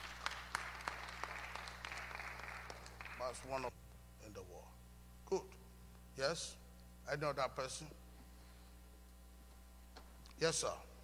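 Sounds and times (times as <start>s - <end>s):
audience clapping for a speaker: 0.0s - 3.6s
low electrical hum: 0.0s - 11.0s
speech: 3.2s - 5.6s, 6.2s - 8.0s, 10.4s - 10.9s.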